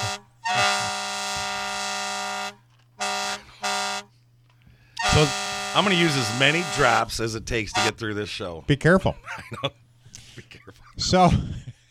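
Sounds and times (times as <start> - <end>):
laughter: 0.0 - 1.7, 9.1 - 11.8
fire truck horn: 0.0 - 4.2, 5.0 - 7.1, 7.7 - 8.0
speech: 5.2 - 9.8, 10.4 - 11.6.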